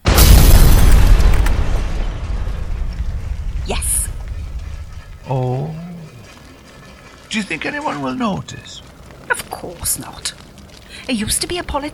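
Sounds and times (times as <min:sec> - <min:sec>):
car bomb explosion: 0:00.0 - 0:05.0
crackling debris: 0:00.0 - 0:11.9
speech: 0:07.3 - 0:08.9, 0:09.6 - 0:10.4, 0:11.1 - 0:11.9.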